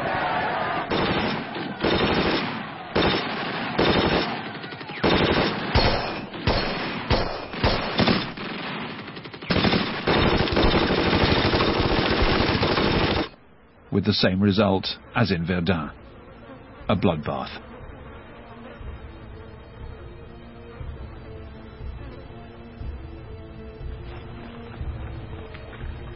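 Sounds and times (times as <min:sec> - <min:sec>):
machine gun fire: 0:00.9 - 0:13.3
speech: 0:14.0 - 0:16.0, 0:16.9 - 0:17.7.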